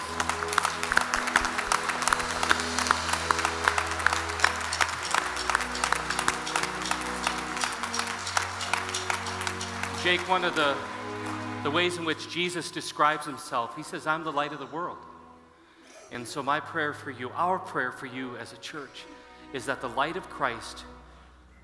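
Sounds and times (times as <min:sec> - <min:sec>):
audience applauding: 0:00.0 - 0:12.3
speech: 0:10.1 - 0:15.1, 0:16.1 - 0:21.0.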